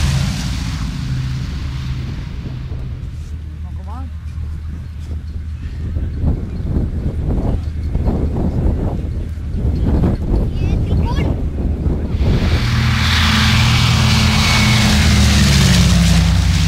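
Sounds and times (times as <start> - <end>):
Douglas DC-3 propeller airplane: 0.0 - 16.6.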